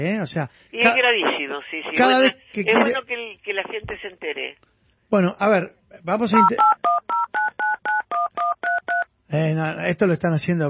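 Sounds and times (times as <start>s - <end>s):
speech: 0.0s - 7.4s, 9.3s - 10.6s
touch-tone dialing beeps from a home landline telephone: 6.4s - 9.1s.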